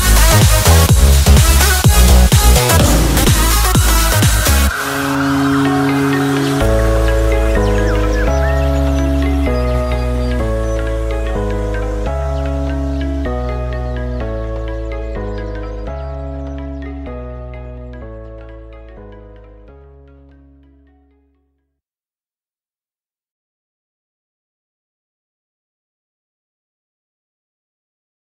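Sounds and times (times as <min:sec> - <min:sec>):
instrumental music: 0:00.0 - 0:21.4.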